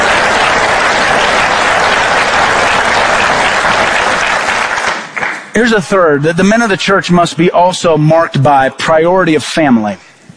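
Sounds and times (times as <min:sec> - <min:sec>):
audience applause: 0:00.0 - 0:05.8
speech: 0:05.6 - 0:10.1.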